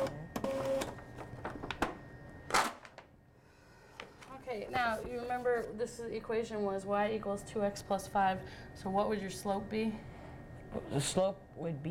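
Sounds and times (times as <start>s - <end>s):
printer printing out a page: 0.0s - 1.8s
speech: 4.6s - 10.1s, 10.7s - 11.8s.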